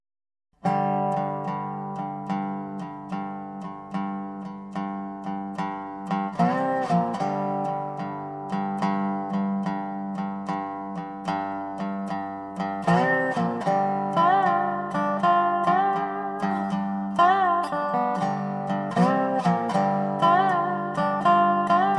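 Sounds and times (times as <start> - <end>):
blues music: 0.6 - 21.9.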